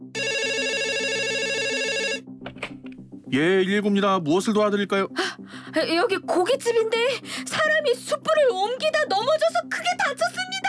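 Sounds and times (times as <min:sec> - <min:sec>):
telephone ringing: 0:00.0 - 0:02.3
speech: 0:03.3 - 0:10.4.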